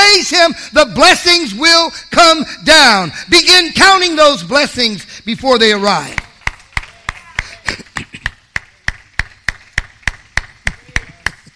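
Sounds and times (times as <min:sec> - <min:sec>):
speech: 0:00.4 - 0:06.2
rhythmic clapping: 0:05.9 - 0:11.5.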